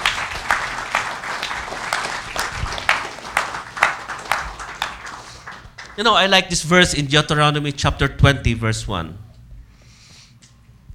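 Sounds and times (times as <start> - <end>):
audience applauding: 0.0 - 6.5
speech: 6.0 - 9.2.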